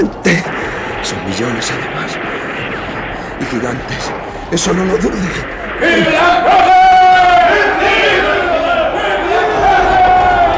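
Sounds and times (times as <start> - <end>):
speech: 1.1 - 2.3, 3.4 - 6.9
large crowd shouting: 5.7 - 10.5.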